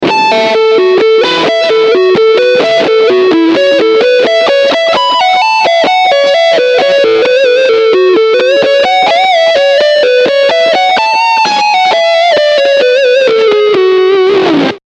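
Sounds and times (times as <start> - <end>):
AC-30 amplifier lead channel: 0.0 - 14.8.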